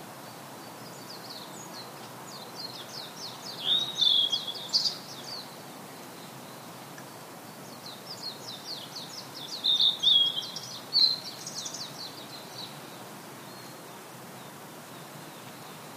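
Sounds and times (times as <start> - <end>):
quiet hiss: 0.0 - 15.9
Blue-and-white flycatcher whistling song: 2.6 - 5.5, 7.8 - 12.7.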